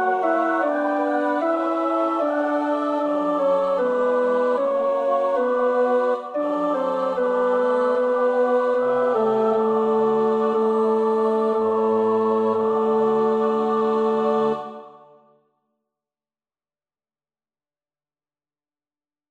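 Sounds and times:
tenor practising a choir part: 0:00.0 - 0:15.2.

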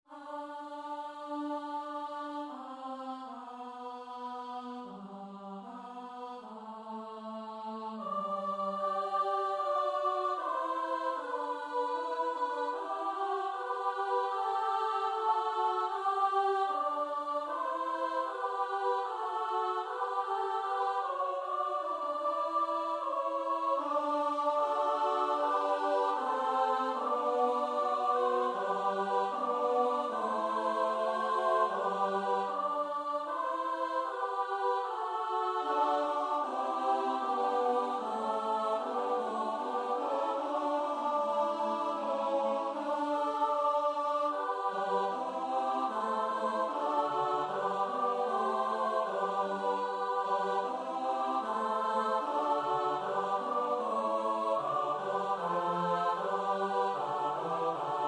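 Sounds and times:
SATB choir part practice: 0:00.0 - 0:58.0.

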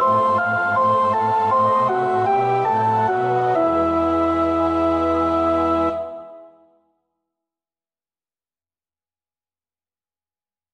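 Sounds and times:
soprano choir singing: 0:00.1 - 0:06.6.

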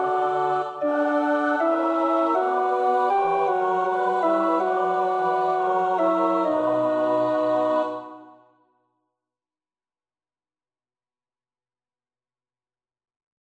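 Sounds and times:
tenor practising a choir part: 0:00.0 - 0:08.4.

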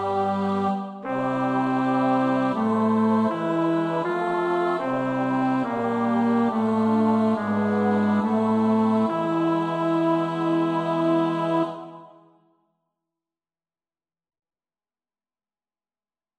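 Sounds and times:
bass: 0:00.0 - 0:11.7.

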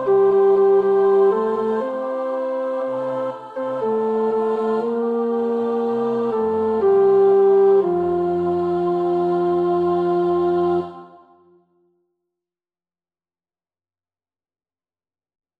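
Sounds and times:
tenor voice singing a choir part for practice: 0:00.0 - 0:11.4.

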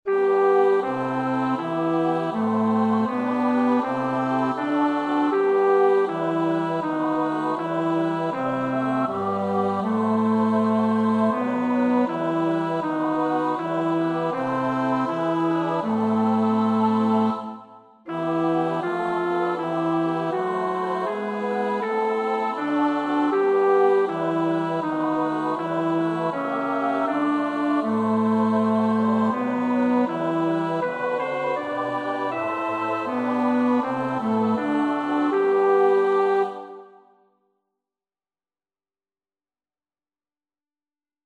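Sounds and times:
bass: 0:00.1 - 0:36.4.

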